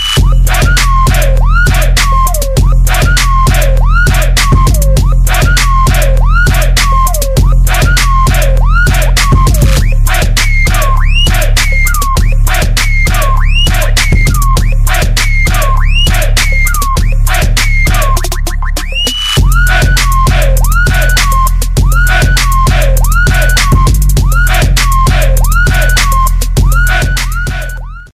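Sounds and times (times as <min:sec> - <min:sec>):
trap music: 0:00.0 - 0:28.1.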